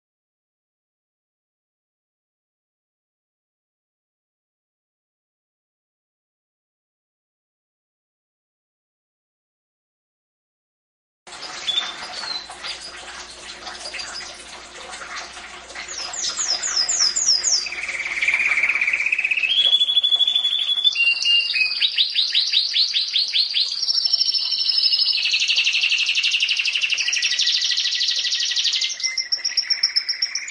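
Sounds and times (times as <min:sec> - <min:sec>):
canary singing trills: 0:11.4 - 0:13.0, 0:15.9 - 0:30.4.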